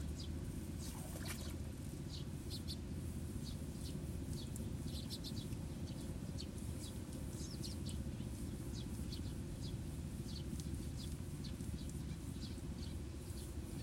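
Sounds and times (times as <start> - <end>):
sparrows chirping over a rice paddy: 0.0 - 13.8
low rumble and wash of water movement: 0.8 - 1.7.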